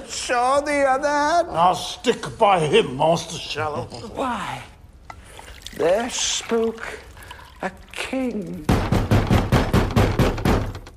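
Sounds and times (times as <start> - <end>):
speech: 0.1 - 4.7, 5.8 - 9.0
knocking on a door: 8.7 - 10.9.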